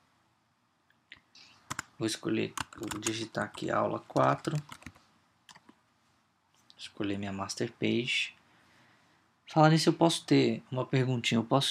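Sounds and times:
faint low noise: 0.0 - 11.7
computer mouse right-clicks: 1.1 - 1.9, 2.5 - 5.8
speech: 2.0 - 4.9, 7.0 - 8.4, 9.5 - 11.7.

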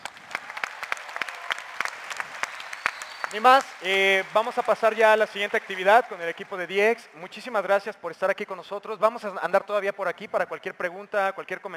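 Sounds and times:
audience applause: 0.0 - 7.0
speech: 3.3 - 11.7.

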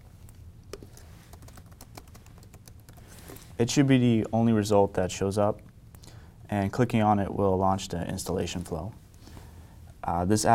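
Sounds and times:
typing on a computer keyboard: 0.7 - 3.1
speech: 3.6 - 5.7, 6.5 - 9.0, 10.1 - 10.5.

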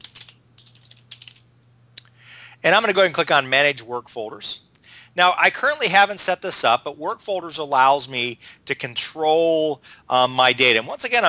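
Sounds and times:
typing on a computer keyboard to search: 0.0 - 1.4
low steady hum: 0.0 - 11.2
speech: 2.6 - 4.6, 5.2 - 11.2.

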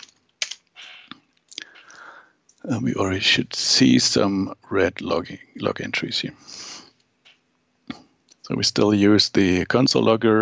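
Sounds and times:
typing a command on a computer keyboard: 0.0 - 0.6
speech: 2.6 - 6.8, 8.5 - 10.4.

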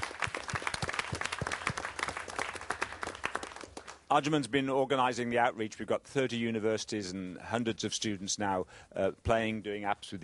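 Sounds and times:
audience applause: 0.0 - 4.0
speech: 4.1 - 10.2.

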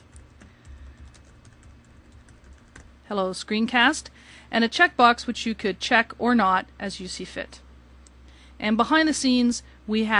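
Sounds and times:
typing on a computer keyboard: 0.0 - 2.9
speech: 3.1 - 7.6, 8.6 - 10.1.

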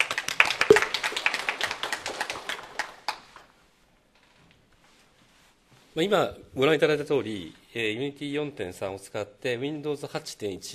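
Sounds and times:
audience applause: 0.0 - 2.9
speech: 6.0 - 10.7.

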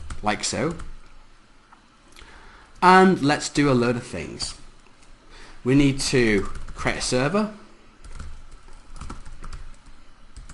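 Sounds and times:
speech: 0.2 - 0.9, 2.8 - 4.6, 5.6 - 7.6
typing on a computer keyboard: 6.4 - 6.8, 8.0 - 10.5.

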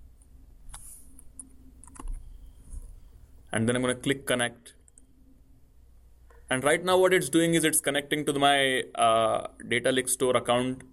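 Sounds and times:
computer keyboard keystrokes typing an account name: 0.7 - 2.2
speech: 3.6 - 4.8, 6.5 - 10.9.

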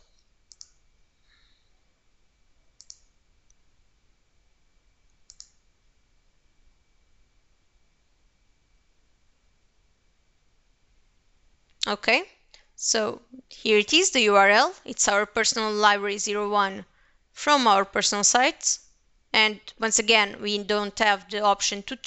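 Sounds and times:
low steady hiss: 0.0 - 22.0
computer mouse clicks: 0.1 - 0.8, 2.8 - 3.6, 5.1 - 5.6
speech: 11.8 - 22.0.

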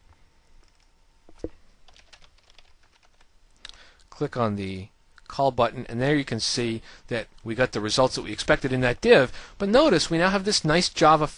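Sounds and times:
typing a username on a computer keyboard: 0.6 - 3.3
speech: 4.2 - 11.3.

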